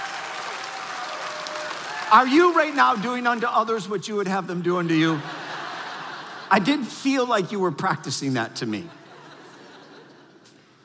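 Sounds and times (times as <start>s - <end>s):
crowd clapping: 0.0s - 4.0s
speech: 2.1s - 5.4s, 6.5s - 9.0s
laughter: 4.8s - 7.4s, 8.7s - 10.7s.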